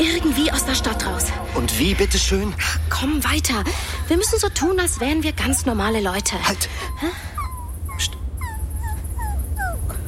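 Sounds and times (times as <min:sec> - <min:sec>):
speech: 0:00.0 - 0:07.3
low steady rumble: 0:00.0 - 0:10.0
dog whimpering: 0:06.4 - 0:10.0.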